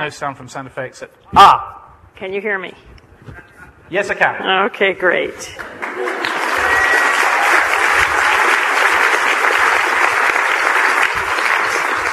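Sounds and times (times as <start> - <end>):
speech: 0.0 - 6.1
theatre audience of about 1,000 clapping in Toronto: 5.6 - 12.1.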